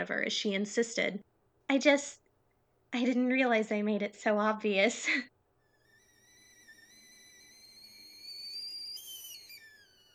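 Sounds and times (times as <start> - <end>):
speech: 0.0 - 2.2, 2.9 - 5.3
kettle whistling as it boils: 5.6 - 10.1.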